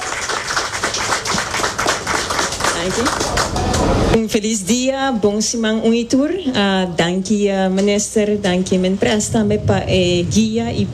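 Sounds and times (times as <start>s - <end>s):
audience applause: 0.0s - 4.0s
speech: 2.8s - 10.9s.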